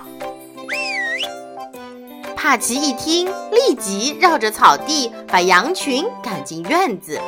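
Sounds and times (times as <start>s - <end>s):
person whistling: 0.7s - 1.4s
speech: 2.4s - 7.2s.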